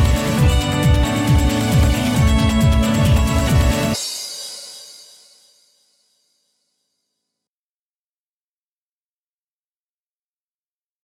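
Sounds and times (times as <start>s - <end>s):
fast-paced jingle music: 0.0s - 4.1s.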